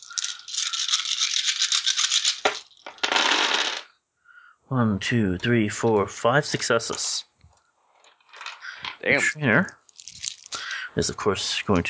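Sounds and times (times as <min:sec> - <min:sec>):
dice being shaken and rolled: 0:00.0 - 0:03.9, 0:08.0 - 0:10.7
speech: 0:04.7 - 0:07.3, 0:09.0 - 0:09.8, 0:11.0 - 0:11.8.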